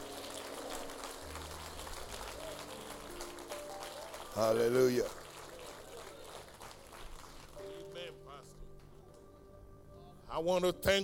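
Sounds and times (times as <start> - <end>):
audience clapping: 0.0 - 8.3
low sustained musical tones: 0.0 - 11.0
speech: 4.4 - 5.2, 10.4 - 11.0.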